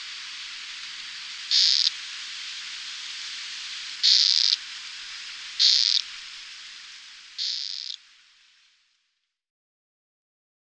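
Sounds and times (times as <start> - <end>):
steady hiss: 0.0 - 9.4
Amazonian poison frog buzzy calls: 1.5 - 2.0, 4.0 - 4.6, 5.6 - 6.1, 7.4 - 8.0.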